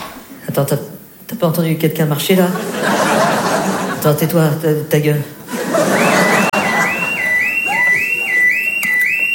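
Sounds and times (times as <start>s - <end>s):
speech: 0.6s - 3.3s, 4.0s - 6.0s
laughter: 2.5s - 4.2s, 5.4s - 9.3s
burglar alarm going off: 5.7s - 9.3s.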